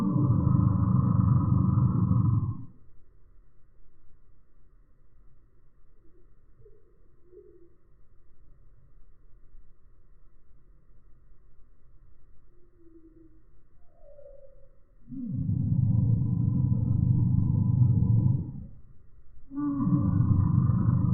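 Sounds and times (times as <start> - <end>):
Eurasian bullfinch threat call slowed: 0.0 - 2.8, 13.9 - 21.1.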